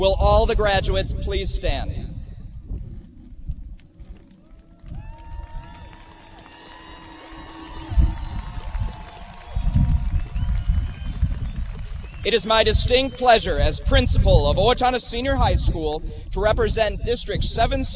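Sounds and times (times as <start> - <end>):
speech: 0.0 - 2.0, 12.2 - 17.9
guests applauding graduates: 4.4 - 13.4.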